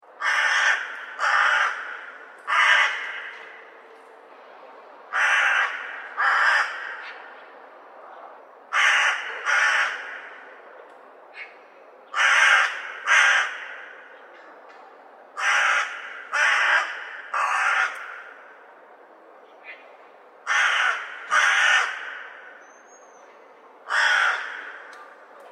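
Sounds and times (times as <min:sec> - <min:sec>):
crow calls: 0:00.2 - 0:03.6, 0:05.1 - 0:07.4, 0:08.7 - 0:10.4, 0:11.3 - 0:14.4, 0:15.4 - 0:18.6, 0:19.6 - 0:22.6, 0:23.8 - 0:25.0.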